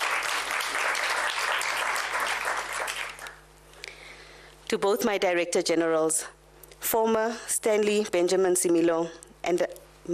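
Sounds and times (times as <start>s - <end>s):
crowd applauding: 0.0s - 3.4s
speech: 4.7s - 10.1s.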